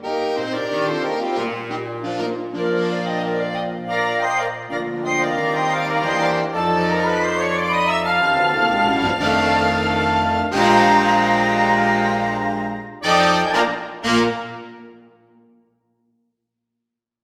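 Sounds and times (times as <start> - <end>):
salsa music: 0.5 - 14.3.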